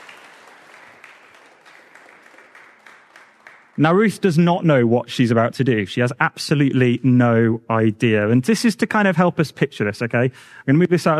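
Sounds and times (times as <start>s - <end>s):
audience applause: 0.0s - 4.1s
speech: 3.8s - 11.1s.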